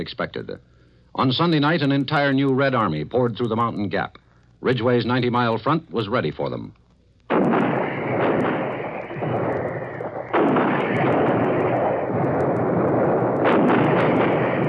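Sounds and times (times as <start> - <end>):
speech: 0.0 - 7.6
heavy artillery fire from 155mm guns: 7.3 - 14.6.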